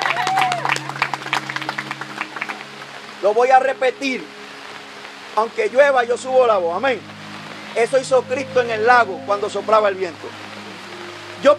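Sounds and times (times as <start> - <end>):
audience applause: 0.0 - 3.1
speech: 3.2 - 4.4, 5.4 - 7.1, 7.7 - 10.5, 11.4 - 11.5.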